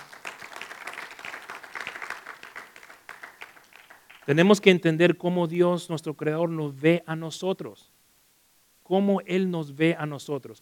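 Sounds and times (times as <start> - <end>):
audience applause: 0.0 - 4.4
speech: 4.3 - 7.9, 8.9 - 10.6.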